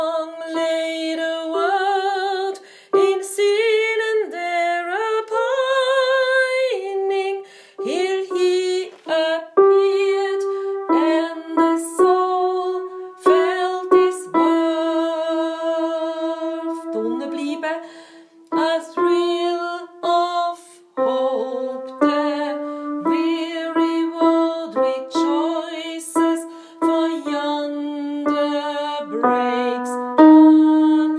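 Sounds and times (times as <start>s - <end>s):
soprano and mezzo-soprano singing: 0.0s - 31.1s.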